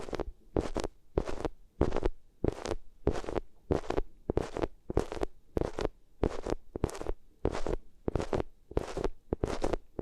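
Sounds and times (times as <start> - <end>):
ears rubbed against a material: 0.0 - 10.0.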